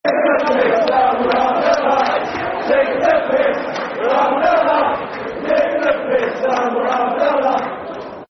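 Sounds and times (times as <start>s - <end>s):
football chant: 0.0s - 8.2s.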